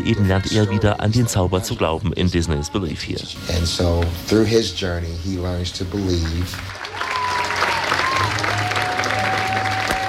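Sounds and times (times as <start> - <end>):
speech: 0.0 - 6.9
large theater audience applause: 5.9 - 10.0.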